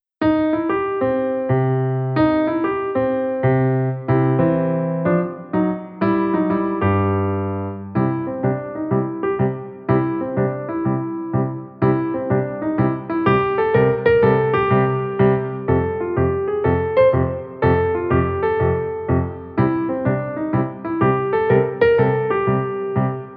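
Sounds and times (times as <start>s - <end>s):
blues music: 0.2s - 23.3s.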